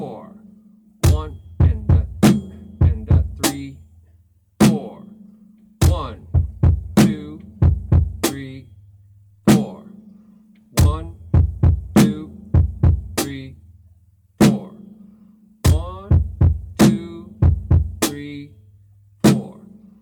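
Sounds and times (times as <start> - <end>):
drum beat: 1.0 - 3.9, 4.6 - 5.0, 5.8 - 8.7, 9.5 - 9.8, 10.8 - 13.6, 14.4 - 14.8, 15.7 - 18.4, 19.2 - 19.6.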